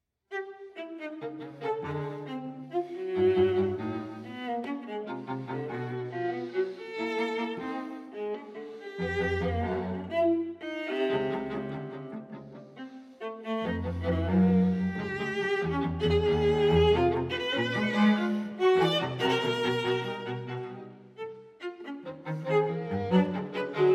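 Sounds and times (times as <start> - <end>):
string quartet playing a moderately fast intermezzo: 0.6 - 23.9.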